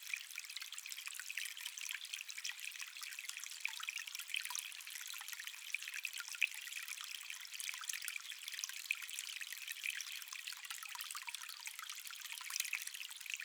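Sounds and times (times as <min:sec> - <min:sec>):
calm water stream: 0:00.0 - 0:13.4.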